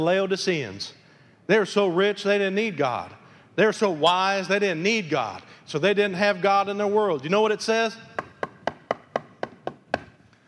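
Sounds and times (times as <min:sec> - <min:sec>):
speech: 0:00.0 - 0:08.2
knocking on a door: 0:08.2 - 0:10.1.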